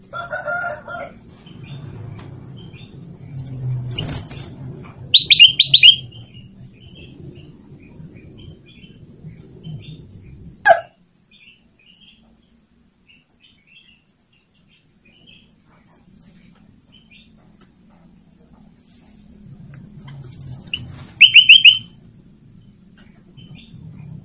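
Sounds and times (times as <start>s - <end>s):
sooty-headed bulbul song: 5.2s - 6.2s, 20.7s - 22.0s.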